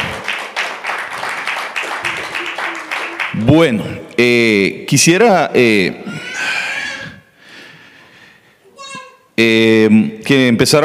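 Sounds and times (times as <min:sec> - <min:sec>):
audience applause: 0:00.0 - 0:03.8
speech: 0:03.4 - 0:06.6, 0:09.4 - 0:10.8.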